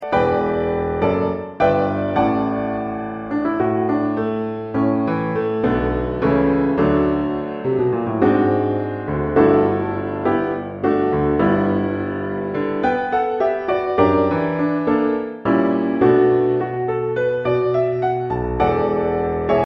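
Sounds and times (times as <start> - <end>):
piano: 0.0 - 19.6.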